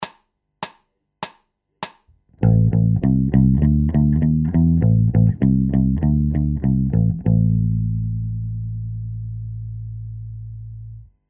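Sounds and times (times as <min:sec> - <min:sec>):
bass loops: 0:02.4 - 0:11.1.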